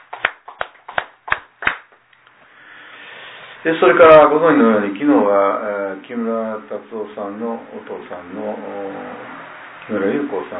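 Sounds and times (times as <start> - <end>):
audience clapping: 0.0 - 1.9
low steady hiss: 0.0 - 10.5
speech: 3.6 - 10.5.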